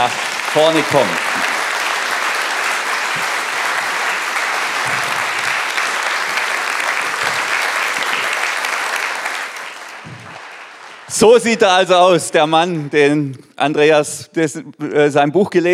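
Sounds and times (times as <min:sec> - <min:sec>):
speech: 0:00.0 - 0:01.5, 0:11.2 - 0:15.7
loud audience applause: 0:00.0 - 0:13.0.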